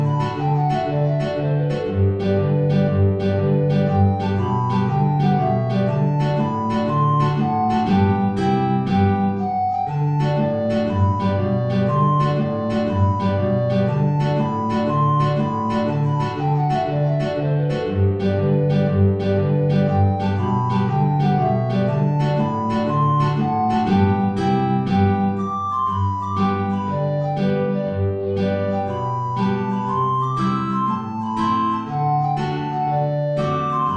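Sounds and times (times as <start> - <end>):
alto recorder playing a hornpipe: 0.0 - 33.9.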